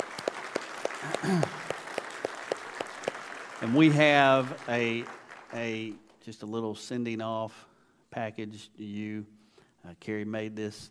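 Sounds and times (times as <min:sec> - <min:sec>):
light audience applause: 0:00.0 - 0:06.0
speech: 0:01.0 - 0:01.6, 0:03.6 - 0:10.8.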